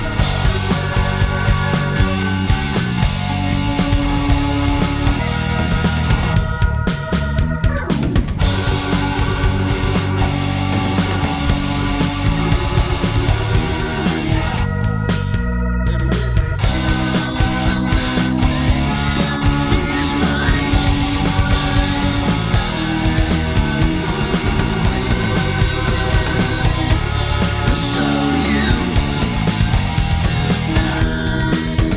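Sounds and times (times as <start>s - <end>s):
karaoke singing: 0.0s - 31.9s.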